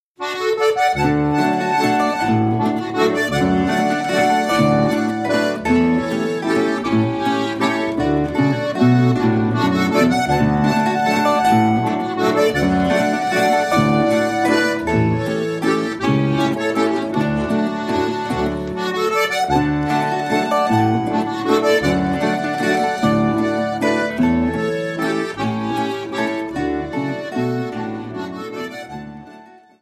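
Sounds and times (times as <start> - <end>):
instrumental half-waltz: 0.2 - 29.8.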